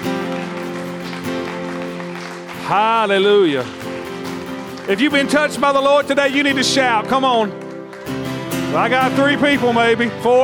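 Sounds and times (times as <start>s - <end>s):
audience clapping hands: 0.0s - 10.4s
speech: 2.7s - 4.1s, 4.9s - 10.4s.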